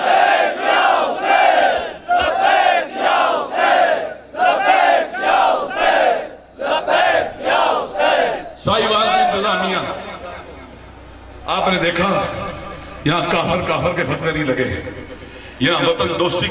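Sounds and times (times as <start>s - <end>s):
crowd chanting a religious slogan: 0.0s - 9.3s
speech: 11.7s - 12.3s, 13.0s - 16.5s.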